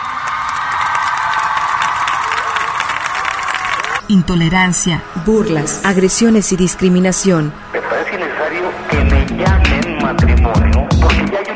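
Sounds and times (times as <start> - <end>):
audience applause: 0.0 - 4.0
speech: 4.1 - 11.5.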